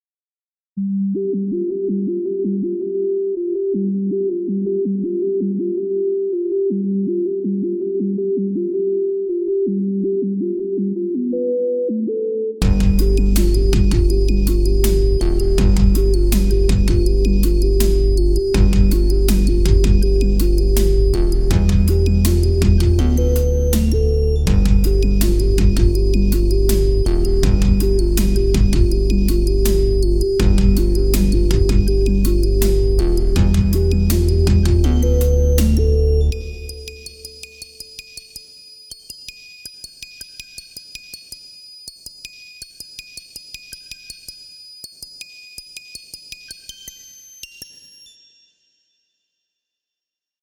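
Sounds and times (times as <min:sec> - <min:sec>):
softsynth music mix: 0:00.8 - 0:38.6.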